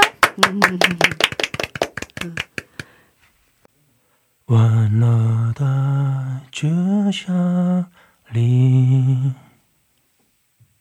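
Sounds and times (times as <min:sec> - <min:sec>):
warm applause: 0:00.0 - 0:03.0
speech: 0:00.4 - 0:01.2, 0:02.2 - 0:02.5, 0:04.5 - 0:09.4.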